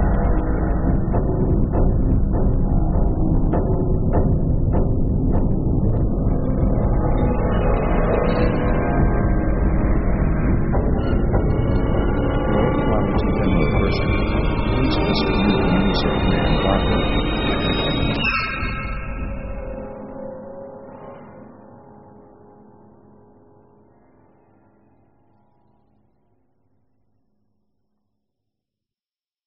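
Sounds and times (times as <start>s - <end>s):
horror synth escalation: 0.0s - 23.2s.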